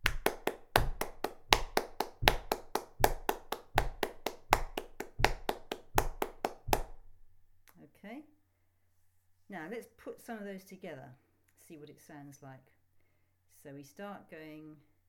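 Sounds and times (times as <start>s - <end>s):
hand clapping in triplets: 0.0s - 7.2s
speech: 9.6s - 12.8s, 13.6s - 14.9s.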